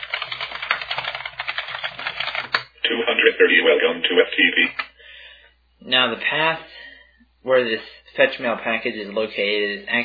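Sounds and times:
typing a password on a computer keyboard: 0.0s - 2.7s
speech: 3.0s - 4.8s, 5.8s - 6.7s, 7.4s - 10.0s.

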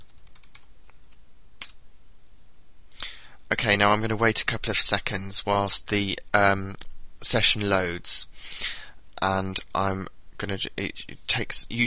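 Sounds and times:
typing username and password on a computer keyboard: 0.0s - 1.8s
speech: 3.5s - 11.8s.

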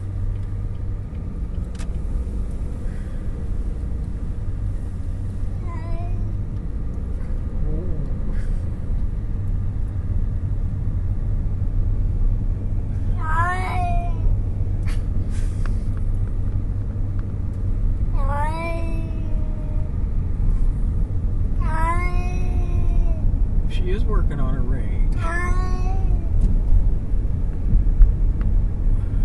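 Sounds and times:
steady low engine-like rumble: 0.0s - 21.6s, 22.2s - 29.2s
cat growling and yowling: 13.2s - 14.2s, 18.2s - 19.9s, 21.6s - 23.2s, 25.2s - 26.3s.

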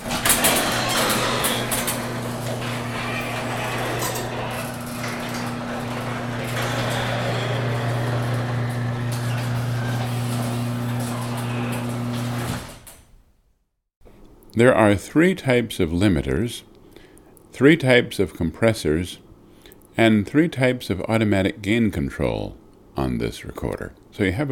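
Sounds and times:
garage door closing with motor drone and rattling: 0.0s - 13.2s
speech: 14.6s - 16.7s, 17.6s - 19.2s, 20.0s - 24.5s.

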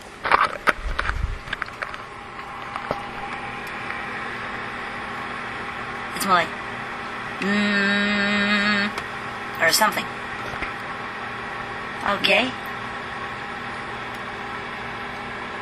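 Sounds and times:
hum inside a running refrigerator: 0.0s - 15.6s
louder buzzing tone: 0.8s - 9.4s
speech: 6.2s - 6.6s, 7.4s - 8.4s, 9.6s - 10.2s, 12.1s - 12.6s.

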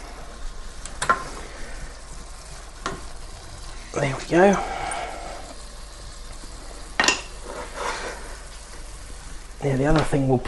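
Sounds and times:
garlic sizzling in a dish in a hot pan: 0.0s - 10.4s
speech: 4.0s - 4.8s, 9.6s - 10.4s
stirring scrapes mixing garlic through a dish in a hot pan: 7.3s - 8.5s.

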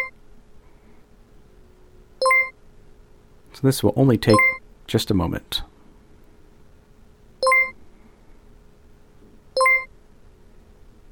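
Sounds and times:
faint steady hum: 0.0s - 11.1s
software installation progress chime: 2.2s - 2.5s, 4.3s - 4.6s, 7.4s - 7.8s, 9.6s - 9.9s
speech: 3.6s - 5.7s.

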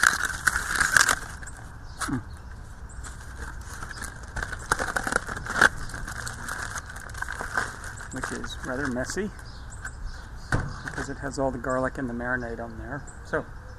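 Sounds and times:
aluminum foil unwrapped from a garlic-marinated brisket: 0.0s - 2.2s, 3.0s - 9.4s
speech: 2.1s - 2.3s, 8.2s - 9.5s, 11.1s - 13.6s.

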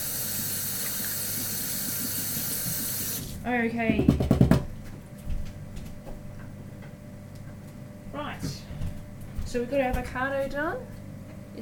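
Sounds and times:
running tap water as hands are washed: 0.0s - 3.4s
speech: 3.4s - 4.5s, 9.5s - 10.9s.

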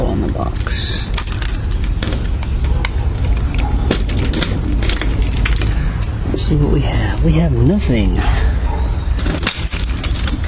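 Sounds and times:
keys jangling at a mailbox: 1.0s - 6.4s, 7.8s - 10.4s
speech: 6.5s - 8.4s.

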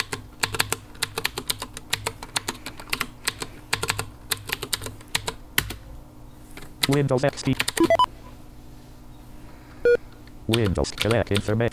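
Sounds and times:
computer keyboard typing a password during Windows XP setup: 0.0s - 5.8s, 6.8s - 8.0s, 10.5s - 11.7s
speech: 6.9s - 7.6s, 10.5s - 11.7s.

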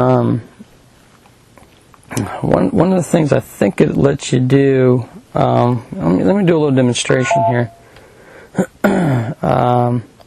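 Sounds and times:
speech: 0.0s - 0.5s, 2.2s - 7.8s, 9.4s - 10.1s
machine electronic beep as it switches off: 7.1s - 7.9s.

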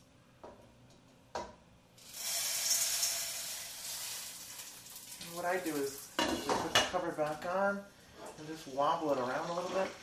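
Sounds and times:
popcorn kernels poured into hot pan: 2.0s - 6.1s
speech: 5.4s - 10.0s.

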